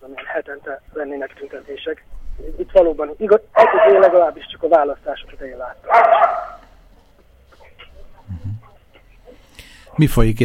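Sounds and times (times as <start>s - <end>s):
speech: 0.7s - 6.5s, 10.0s - 10.4s
dogs barking: 3.6s - 4.4s, 5.8s - 6.8s.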